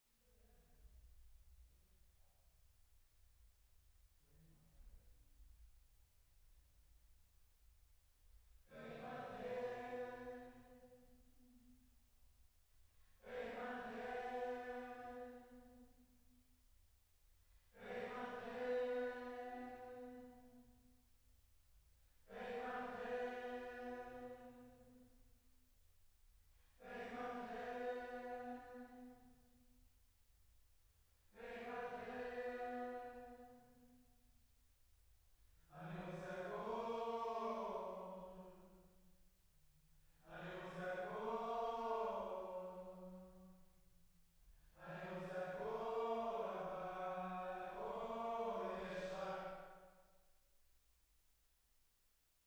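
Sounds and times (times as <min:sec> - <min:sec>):
choir singing: 0:08.7 - 0:10.9, 0:13.2 - 0:15.6, 0:17.8 - 0:20.4, 0:22.3 - 0:24.8, 0:26.8 - 0:29.2, 0:31.4 - 0:33.6, 0:35.8 - 0:38.7, 0:40.3 - 0:43.3, 0:44.8 - 0:49.7.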